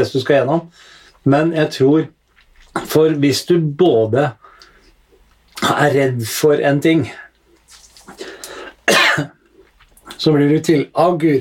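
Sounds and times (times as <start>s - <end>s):
speech: 0.0s - 2.2s, 2.8s - 4.4s, 5.6s - 7.2s, 10.2s - 11.3s
soft raspy breathing and throat sounds: 0.7s - 1.2s, 4.4s - 5.0s, 8.0s - 8.8s
person coughing after choking on a throat lozenge: 8.8s - 9.4s.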